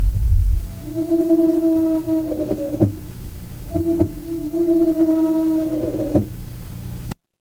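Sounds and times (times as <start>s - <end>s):
horror creak: 0.0s - 7.2s.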